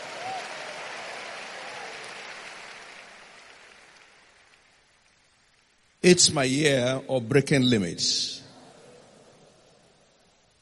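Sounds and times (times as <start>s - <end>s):
audience clapping: 0.0s - 5.8s
speech: 6.0s - 8.4s.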